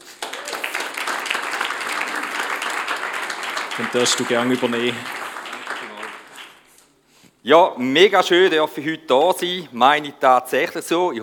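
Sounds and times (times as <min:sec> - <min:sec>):
audience applause: 0:00.0 - 0:06.8
speech: 0:03.8 - 0:05.2, 0:07.4 - 0:11.2.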